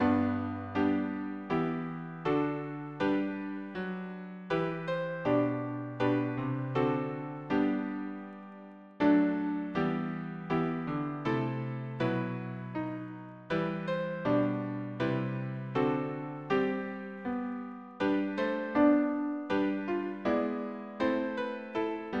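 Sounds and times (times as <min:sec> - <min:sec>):
piano harmony: 0:00.0 - 0:22.1.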